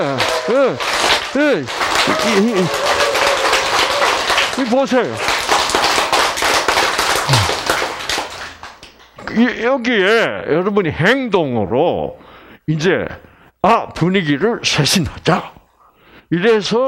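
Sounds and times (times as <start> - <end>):
speech: 0.0 - 3.0, 4.6 - 5.4, 9.4 - 15.6, 16.3 - 16.8
audience clapping: 0.0 - 9.2.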